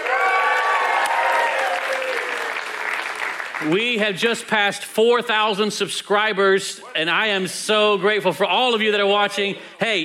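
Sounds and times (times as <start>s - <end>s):
church congregation applauding a welcome during a morning service: 0.0s - 4.1s
speech: 3.6s - 10.0s.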